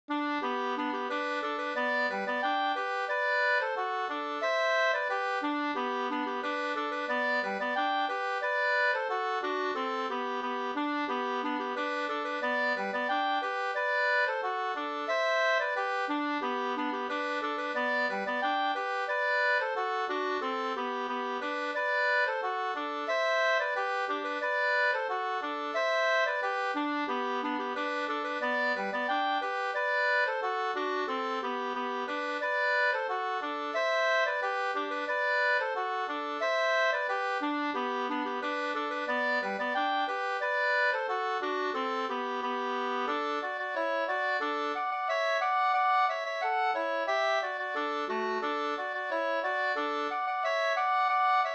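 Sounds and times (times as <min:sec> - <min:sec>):
polka music: 0:00.1 - 0:51.5.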